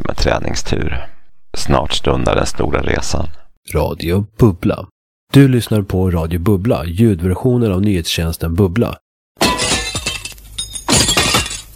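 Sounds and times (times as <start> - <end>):
speech: 0.2 - 9.6
window pane shattering: 9.4 - 11.7.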